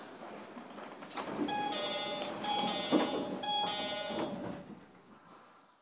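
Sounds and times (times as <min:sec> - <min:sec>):
door: 0:01.2 - 0:04.6.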